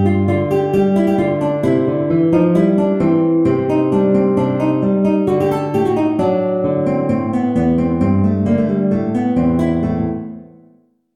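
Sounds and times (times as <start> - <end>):
guitar playing a freylachs in A minor: 0.0 - 10.8.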